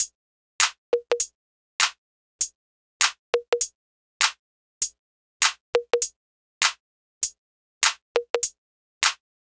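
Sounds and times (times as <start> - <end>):
percussion: 0.0 - 9.2.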